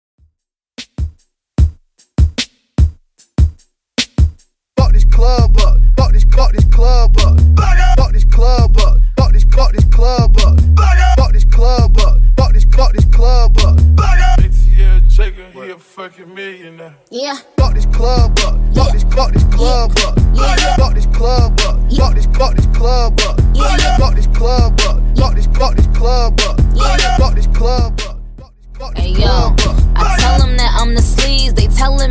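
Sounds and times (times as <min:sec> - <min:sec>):
Top 40 pop music at 75 BPM: 0:04.8 - 0:15.6, 0:17.5 - 0:32.0.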